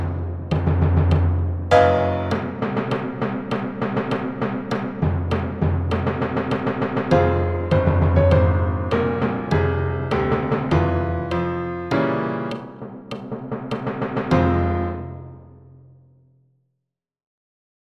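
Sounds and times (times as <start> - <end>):
timpani: 0.0 - 15.6
piano: 0.0 - 16.0.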